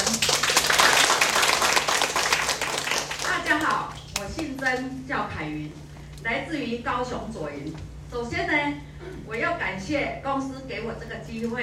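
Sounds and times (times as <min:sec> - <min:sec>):
warm audience applause: 0:00.0 - 0:03.8
speech: 0:04.6 - 0:11.6.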